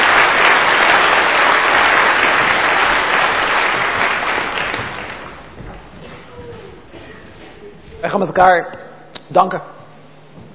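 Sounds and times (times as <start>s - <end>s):
audience applause: 0.0s - 5.6s
speech: 8.1s - 9.8s.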